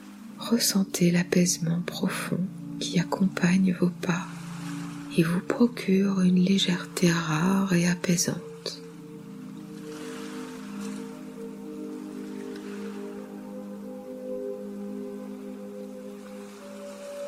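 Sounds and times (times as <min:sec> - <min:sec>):
ocean waves: 0:00.0 - 0:17.2
speech: 0:00.5 - 0:04.4, 0:05.2 - 0:08.8.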